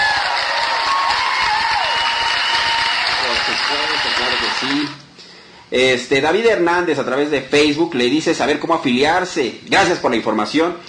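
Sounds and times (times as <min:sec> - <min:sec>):
audience applause: 0:00.0 - 0:05.0
speech: 0:05.7 - 0:10.8.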